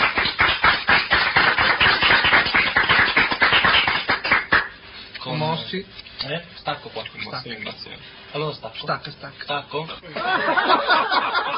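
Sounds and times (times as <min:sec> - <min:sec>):
applause: 0:00.0 - 0:04.8
speech: 0:05.7 - 0:11.5
laughter: 0:10.0 - 0:11.5.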